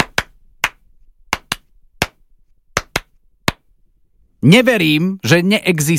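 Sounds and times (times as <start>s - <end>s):
hand claps beating out a rhythm as a quiz clue: 0.0s - 2.2s, 2.8s - 3.7s
speech: 4.4s - 5.9s.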